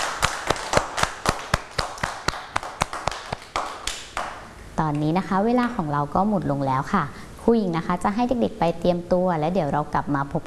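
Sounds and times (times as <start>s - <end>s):
children clapping hands: 0.0s - 4.5s
speech: 4.8s - 10.4s.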